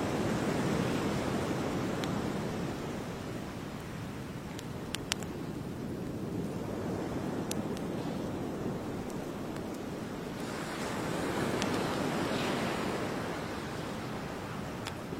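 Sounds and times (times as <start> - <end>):
light wind: 0.0 - 15.1
ocean waves washing onto a beach at dusk: 0.0 - 15.1
faint crackles beside a campfire: 1.7 - 13.0, 14.6 - 15.1.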